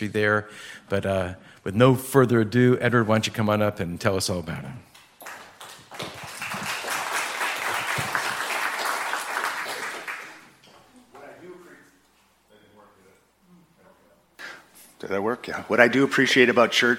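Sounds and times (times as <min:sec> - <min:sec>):
speech: 0:00.0 - 0:04.9, 0:15.1 - 0:16.9
audience applause: 0:05.2 - 0:10.5.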